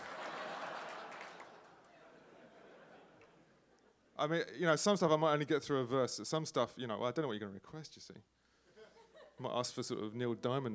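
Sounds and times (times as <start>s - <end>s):
audience clapping: 0.0s - 2.2s
laughter: 0.0s - 4.1s, 8.7s - 9.6s
speech: 4.2s - 8.4s, 9.4s - 10.7s.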